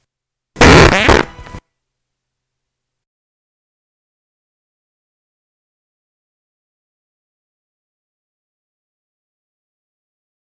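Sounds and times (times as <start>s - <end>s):
fart: 0.6s - 1.6s.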